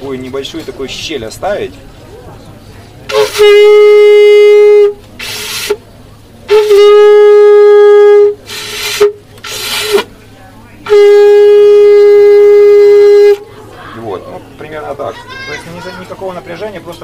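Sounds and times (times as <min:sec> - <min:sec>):
speech: 0:00.0 - 0:02.0, 0:03.4 - 0:05.0, 0:06.5 - 0:07.3
conch shell blown like a trumpet: 0:03.1 - 0:05.8, 0:06.5 - 0:10.1, 0:10.8 - 0:13.4.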